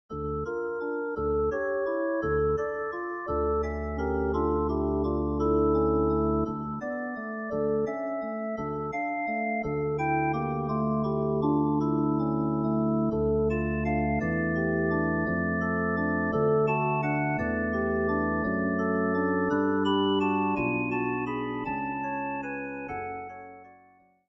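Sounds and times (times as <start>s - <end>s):
organ: 0.8s - 23.5s.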